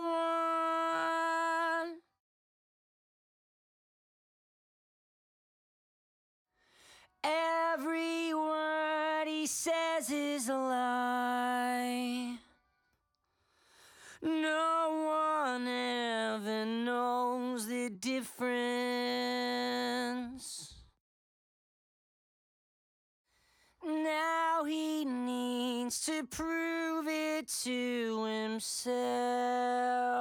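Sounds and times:
main vocals: 0.0s - 2.0s, 7.2s - 12.5s, 14.0s - 20.9s, 23.8s - 30.1s.

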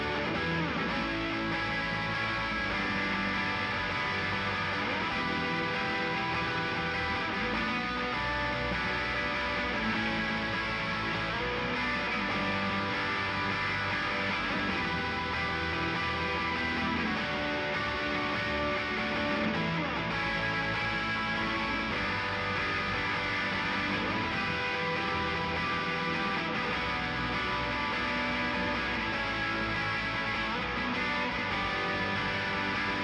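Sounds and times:
guitars: 0.0s - 33.0s.

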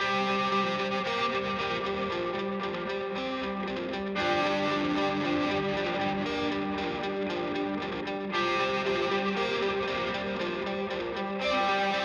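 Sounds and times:
guitars: 0.0s - 12.0s.

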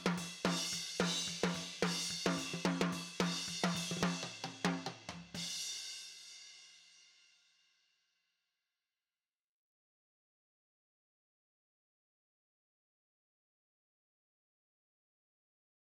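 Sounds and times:
snare drum: 0.0s - 5.6s.

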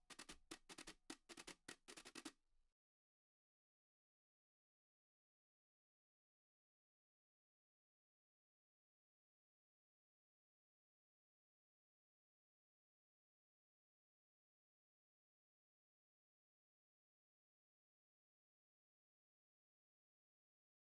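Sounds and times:
percussion: 0.0s - 2.3s.

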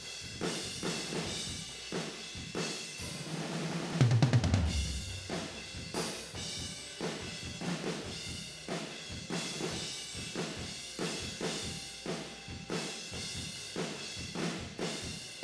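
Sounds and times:
tom drums: 0.0s - 15.4s.

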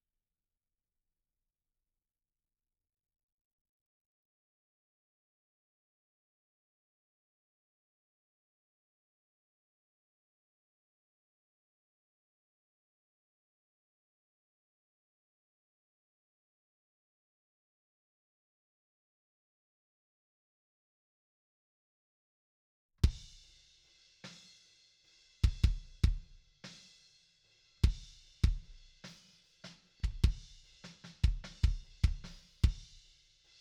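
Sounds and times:
kick drum: 23.0s - 23.4s, 25.4s - 26.4s, 27.8s - 28.8s, 30.0s - 33.0s.

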